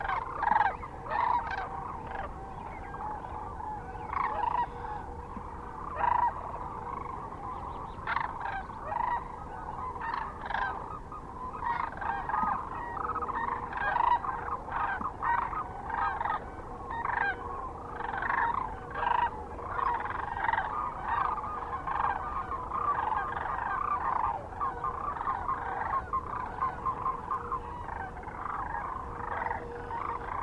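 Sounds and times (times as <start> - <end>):
sandhill cranes bugling in a chorus: 0.0 - 30.4.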